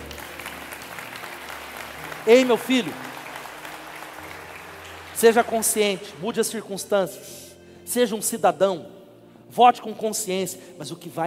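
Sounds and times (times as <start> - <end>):
audience applause: 0.0 - 6.5
speech: 2.3 - 3.1, 5.2 - 11.2.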